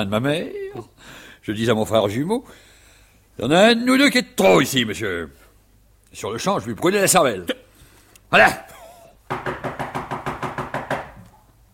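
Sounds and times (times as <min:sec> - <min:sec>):
speech: 0:00.0 - 0:02.7, 0:03.4 - 0:05.4, 0:06.1 - 0:07.6, 0:08.3 - 0:09.6
police pounding on a door: 0:09.3 - 0:11.2.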